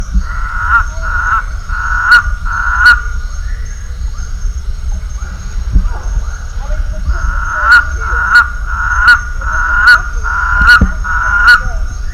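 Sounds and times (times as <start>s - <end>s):
Hose's toad buzzy pulsed calls: 0.2s - 3.3s, 6.1s - 11.9s.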